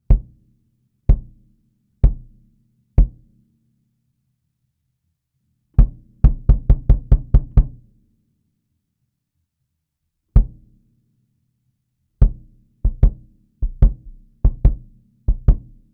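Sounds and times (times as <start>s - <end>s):
sub kick drum: 0.0s - 0.4s, 1.1s - 3.3s, 5.8s - 7.8s, 10.4s - 10.8s, 12.2s - 15.9s.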